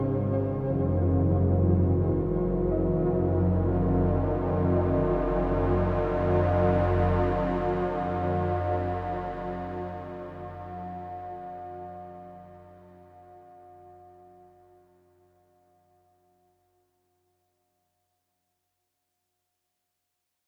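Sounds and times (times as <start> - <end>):
Massive synthesizer: 0.0 - 14.9.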